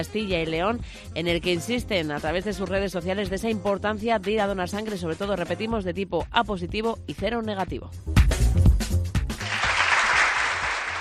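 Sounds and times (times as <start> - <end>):
speech: 0.0 - 8.3
applause: 9.3 - 11.0.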